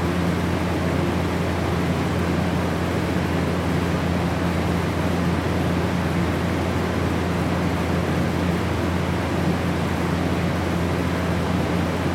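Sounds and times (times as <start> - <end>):
walk-in freezer industrial machinery inside: 0.0 - 12.1.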